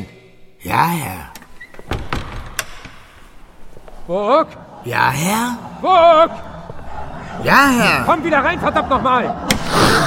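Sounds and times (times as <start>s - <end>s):
speech: 0.6s - 1.4s, 4.1s - 6.5s, 7.4s - 10.0s
door closed from outside: 1.2s - 3.8s
laughter: 3.8s - 10.0s.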